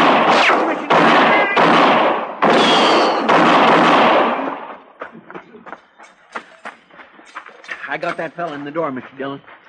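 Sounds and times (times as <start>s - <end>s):
gunshots: 0.0s - 4.9s
speech: 8.0s - 9.6s.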